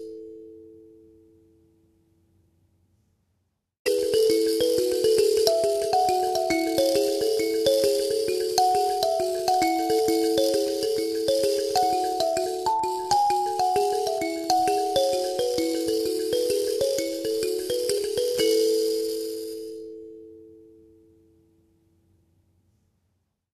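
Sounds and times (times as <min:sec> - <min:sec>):
African karimba: 0:00.0 - 0:00.8, 0:03.9 - 0:21.0.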